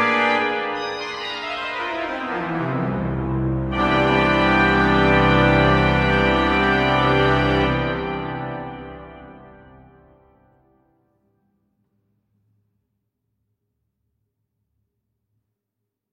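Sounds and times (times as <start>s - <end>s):
full organ grand jeu registration: 0.0s - 10.0s.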